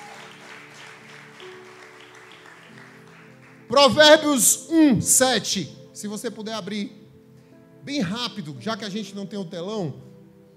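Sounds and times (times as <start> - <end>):
crowd clapping: 0.0 - 4.3
speech: 3.7 - 7.0, 7.8 - 10.1.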